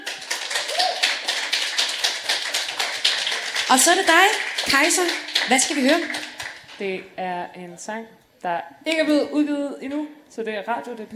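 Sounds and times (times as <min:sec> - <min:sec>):
crowd applauding for the panel: 0:00.0 - 0:06.8
speech: 0:03.7 - 0:11.1.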